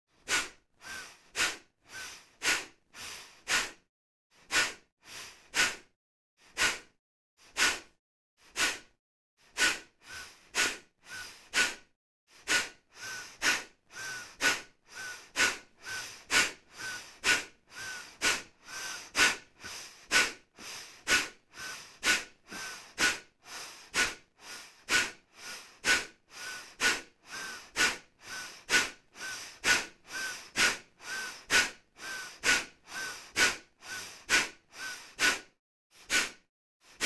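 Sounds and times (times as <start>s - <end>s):
fast rhythmic breathing exercise through the nose: 0.2s - 37.0s.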